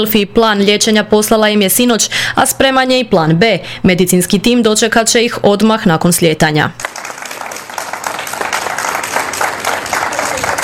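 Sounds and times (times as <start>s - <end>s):
speech: 0.0s - 7.0s
crowd clapping for a family's departure at Zagreb airport: 6.8s - 10.6s.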